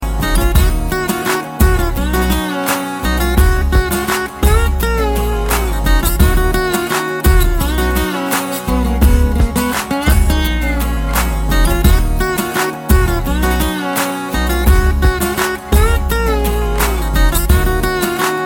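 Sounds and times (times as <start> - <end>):
heart touching melody: 0.0 - 18.4.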